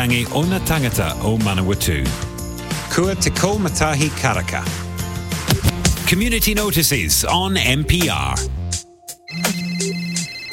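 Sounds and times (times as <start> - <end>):
speech: 0.0 - 2.3, 2.9 - 4.8, 6.1 - 8.6
phone ringtone ringing: 9.2 - 10.5.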